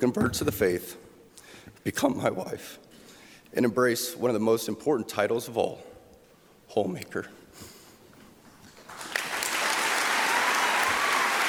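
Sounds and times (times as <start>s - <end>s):
speech: 0.0s - 1.1s, 1.8s - 2.9s, 3.5s - 5.9s, 6.7s - 7.7s
audience applause after a speech: 8.9s - 11.4s.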